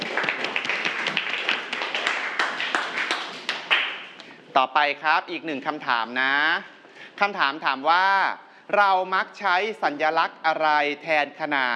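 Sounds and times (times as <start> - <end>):
students clapping: 0.0 - 4.3
speech: 4.6 - 11.7.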